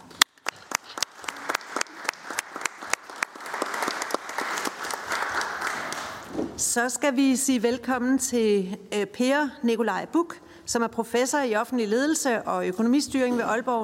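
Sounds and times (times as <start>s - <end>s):
audience applause for a guest in a Danish studio: 0.0s - 6.3s
speech: 6.8s - 13.8s.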